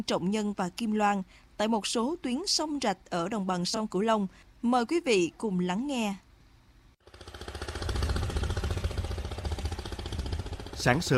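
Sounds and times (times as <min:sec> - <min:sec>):
speech: 0:00.0 - 0:06.2, 0:10.8 - 0:11.1
Longtail boat engine chugging on a canal: 0:07.0 - 0:11.1.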